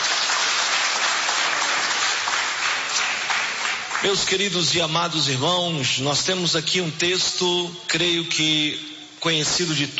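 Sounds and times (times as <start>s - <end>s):
crowd audience applauding: 0.0s - 4.5s
speech: 4.0s - 9.9s.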